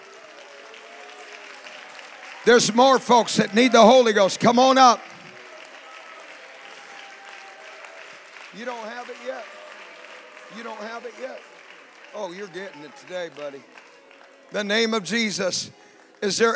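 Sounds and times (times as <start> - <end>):
audience clapping: 0.0 - 16.5
speech: 2.4 - 5.1, 10.5 - 11.5, 12.1 - 13.8, 14.5 - 16.5.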